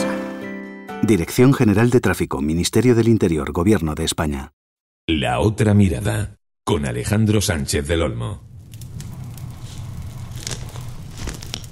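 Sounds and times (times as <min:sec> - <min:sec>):
speech: 0:01.0 - 0:08.5
crackling campfire with sticks added: 0:08.4 - 0:11.7.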